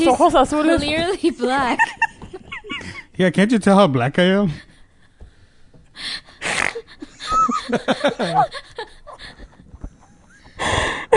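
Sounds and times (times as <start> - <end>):
speech: 0.0 - 2.0, 3.2 - 4.7, 7.7 - 8.9
person snorting while laughing: 6.4 - 6.9
wheezy gasping laughter: 6.4 - 11.1.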